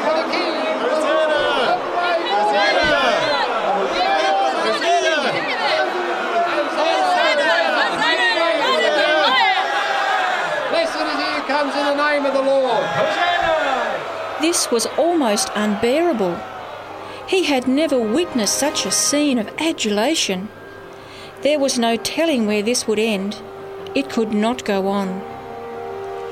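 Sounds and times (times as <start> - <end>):
people shouting: 0.0 - 20.1
large crowd roaring: 0.0 - 20.9
speech: 14.4 - 16.6, 17.3 - 20.6, 21.4 - 25.3.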